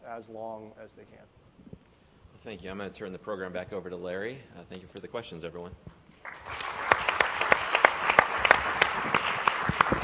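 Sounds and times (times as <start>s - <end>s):
speech: 0.1s - 1.8s, 2.4s - 6.6s
audience applause: 6.2s - 10.0s.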